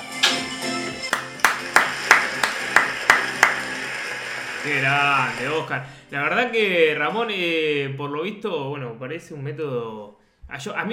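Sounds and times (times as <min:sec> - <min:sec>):
applause: 0:01.1 - 0:03.9
speech: 0:04.6 - 0:10.9.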